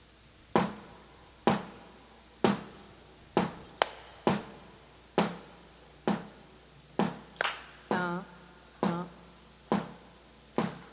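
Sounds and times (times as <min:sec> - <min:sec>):
stomp stomp stomp clap rhythm: 0:00.5 - 0:10.9.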